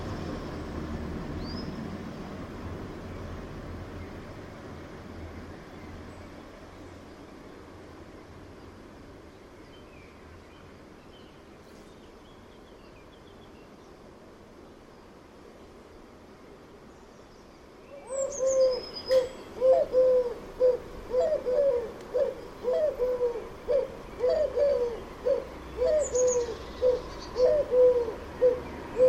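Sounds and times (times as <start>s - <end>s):
bird calling with mellow cooing notes: 18.0s - 29.0s.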